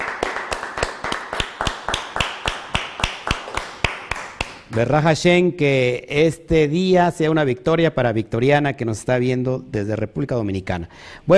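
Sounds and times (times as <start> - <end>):
steady hand claps: 0.0 - 5.0
speech: 4.8 - 11.3.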